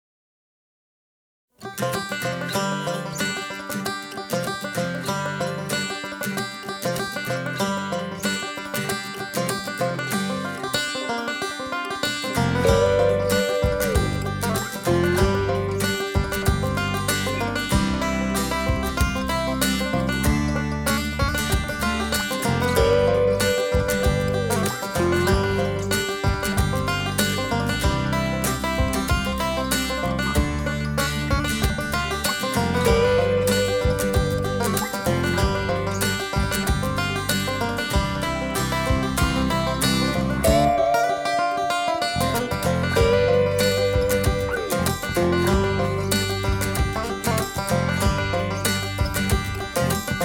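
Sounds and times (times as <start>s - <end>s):
country music: 1.6s - 50.2s.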